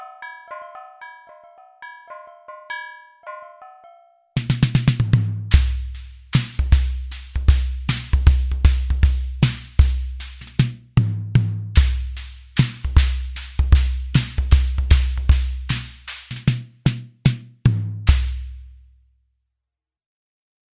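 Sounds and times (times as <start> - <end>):
NORDRUM electronic drum material sounds: 4.4 - 11.1, 11.8 - 17.4.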